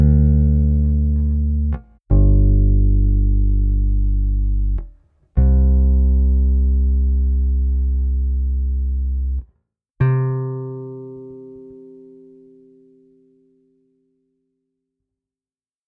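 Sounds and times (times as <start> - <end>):
bass track: 0.0 - 9.5.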